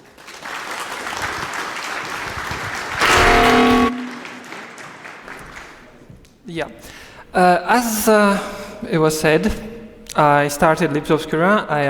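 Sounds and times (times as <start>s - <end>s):
audience applause: 0.0s - 6.1s
speech: 6.5s - 11.8s.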